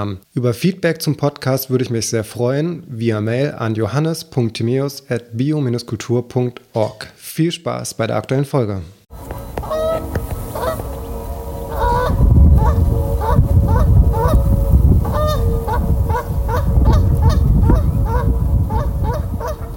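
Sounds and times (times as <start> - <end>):
speech: 0.0 - 9.4
Canada goose honking call: 9.5 - 19.7.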